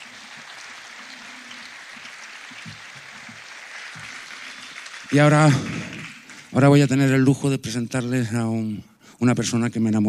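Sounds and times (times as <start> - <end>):
audience applause: 0.0 - 7.2
speech: 5.1 - 5.7, 6.6 - 10.0.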